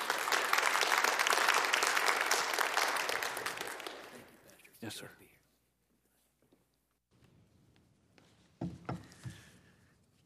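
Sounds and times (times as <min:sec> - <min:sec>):
audience applauding to welcome a speaker to the stage: 0:00.0 - 0:04.5
speech: 0:04.9 - 0:05.2.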